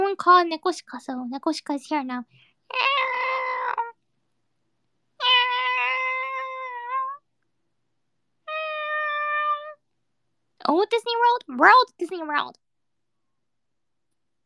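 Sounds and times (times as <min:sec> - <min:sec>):
speech: 0:00.1 - 0:03.2, 0:10.8 - 0:12.6
cat meowing: 0:02.7 - 0:04.0, 0:05.2 - 0:07.2, 0:08.5 - 0:09.8.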